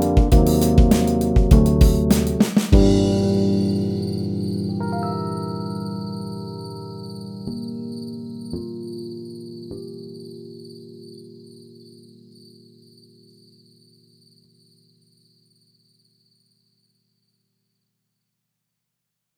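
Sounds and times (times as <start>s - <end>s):
drums: 0.0s - 3.8s
Jazz bass guitar: 0.0s - 4.9s
Rhodes electric piano: 0.0s - 13.0s.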